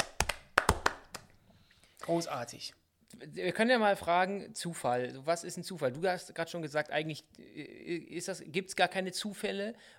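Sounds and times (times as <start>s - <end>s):
hands clapping: 0.0s - 1.4s
speech: 2.1s - 9.9s.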